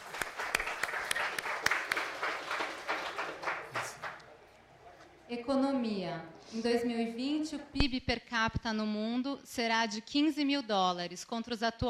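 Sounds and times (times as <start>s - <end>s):
audience applause: 0.0s - 4.4s
speech: 5.5s - 11.8s.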